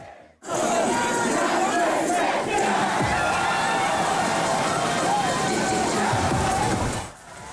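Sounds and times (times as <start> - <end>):
crowd shouting and chattering at an outdoor swimming pool: 0.0 - 7.5.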